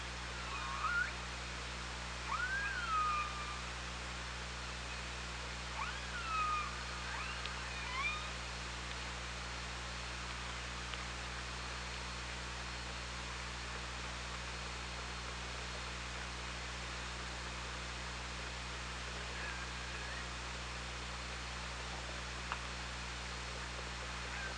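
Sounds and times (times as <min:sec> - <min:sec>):
low hum: 0:00.0 - 0:24.5
killer whale whistles: 0:00.4 - 0:01.2, 0:02.3 - 0:03.7, 0:05.8 - 0:08.4.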